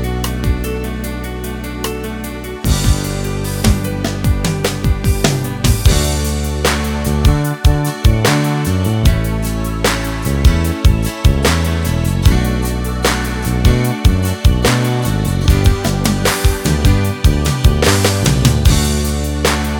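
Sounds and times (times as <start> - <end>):
piano ballad: 0.0 - 19.7.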